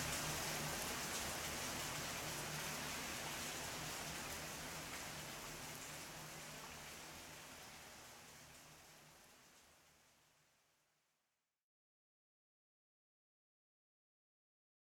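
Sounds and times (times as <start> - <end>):
soft rain: 0.0 - 11.2.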